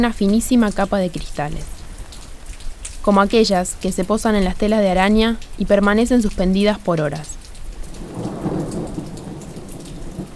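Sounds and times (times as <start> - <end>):
speech: 0.0 - 1.8, 3.1 - 7.4
heavy rain: 0.0 - 10.3
thunder: 8.0 - 10.3.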